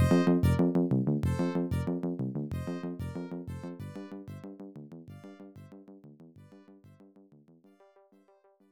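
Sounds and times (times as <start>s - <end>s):
unused background music: 0.0s - 5.8s.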